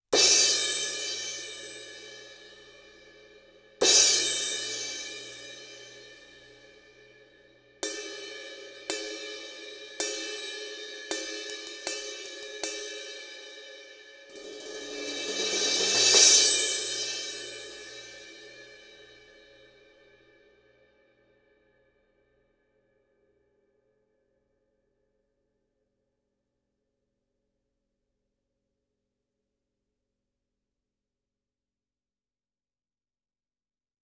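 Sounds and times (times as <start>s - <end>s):
crash cymbal: 0.2s - 21.0s.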